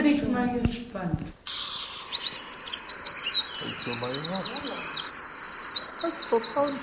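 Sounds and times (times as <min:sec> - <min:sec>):
speech: 0:00.0 - 0:01.6, 0:06.3 - 0:06.8
Eurasian wren song: 0:01.5 - 0:06.8.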